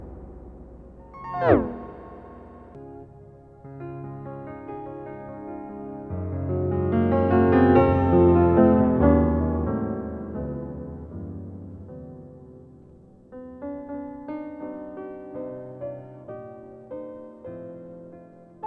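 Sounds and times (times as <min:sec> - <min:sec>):
Yamaha C7 grand piano through Waves Doppler effect: 0:00.0 - 0:12.8.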